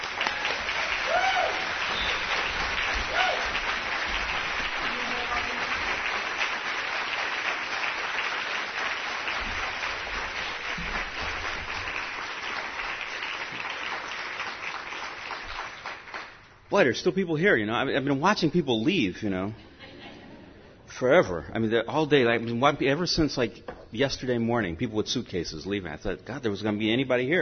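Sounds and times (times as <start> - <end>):
audience applause welcoming an author to the stage: 0.0 - 16.4
speech: 16.8 - 19.7, 21.0 - 27.4.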